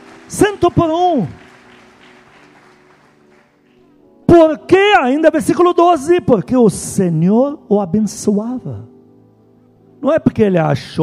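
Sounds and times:
audience applause: 0.0 - 3.9
speech: 0.3 - 1.4, 4.3 - 8.9, 10.0 - 11.0.

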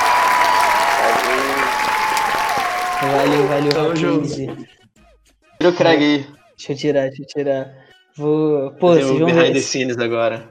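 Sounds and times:
applause from a group: 0.0 - 4.0
speech: 3.0 - 4.8, 5.6 - 10.4.

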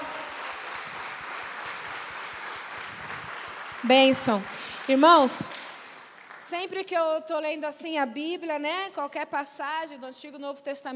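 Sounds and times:
audience applause: 0.0 - 6.5
speech: 3.8 - 5.6, 6.5 - 10.9.

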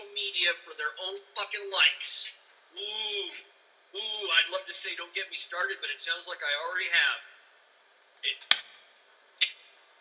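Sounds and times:
speech: 0.4 - 7.3, 8.2 - 8.7
hand claps: 8.4 - 8.8.

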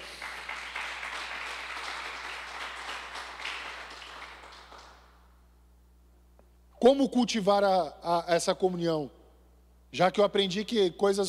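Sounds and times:
applause: 0.0 - 5.2
speech: 6.8 - 9.2, 9.9 - 11.2.

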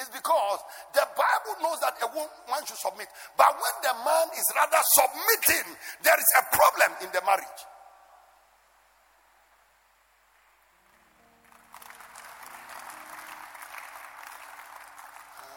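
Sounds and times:
speech: 1.6 - 7.7
audience clapping: 10.8 - 15.5.

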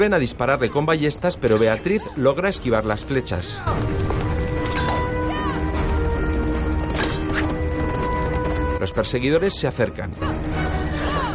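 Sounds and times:
speech: 0.0 - 4.2, 8.8 - 10.7
horse galloping through a forest: 3.6 - 9.1.

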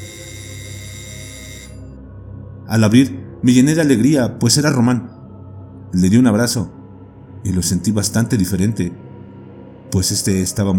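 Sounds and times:
doorbell ringing: 0.0 - 1.9
speech: 2.7 - 5.2, 5.9 - 6.8, 7.4 - 9.0, 9.9 - 10.7.

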